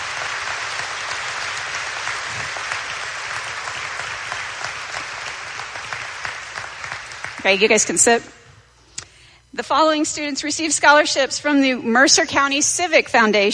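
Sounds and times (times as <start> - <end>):
audience applause for scholarship winners: 0.0 - 7.9
speech: 7.4 - 8.4, 9.6 - 13.5.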